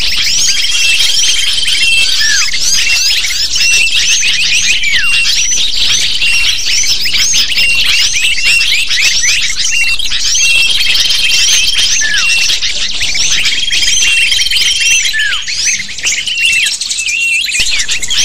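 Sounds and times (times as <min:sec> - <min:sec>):
many lovebirds calling: 0:00.0 - 0:18.2.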